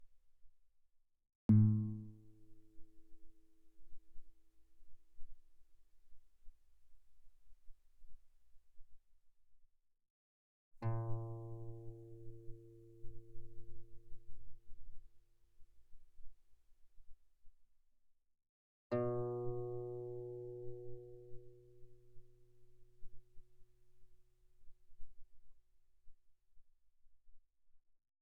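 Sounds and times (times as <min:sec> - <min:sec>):
guitar played pianissimo sul E, E2 and B2: 0:01.5 - 0:02.8, 0:10.8 - 0:14.3, 0:18.9 - 0:23.2.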